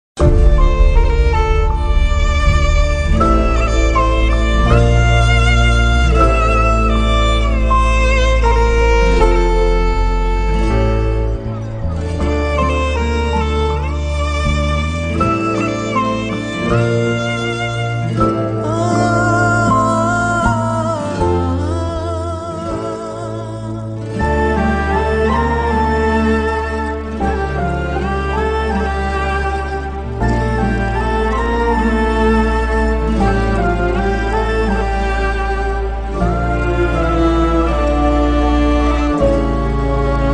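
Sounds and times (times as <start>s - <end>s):
emotional background music ringtone: 0.2s - 40.3s.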